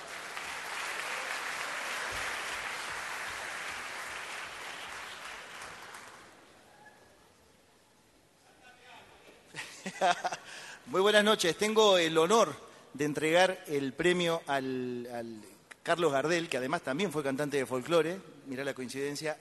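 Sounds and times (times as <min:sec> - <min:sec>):
audience applause: 0:00.0 - 0:06.5
speech: 0:09.9 - 0:19.4.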